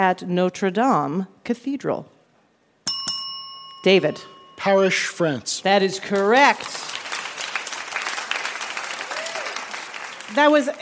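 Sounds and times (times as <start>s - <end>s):
speech: 0.0s - 2.2s, 3.8s - 6.9s, 10.3s - 10.7s
audience applause: 6.2s - 10.7s.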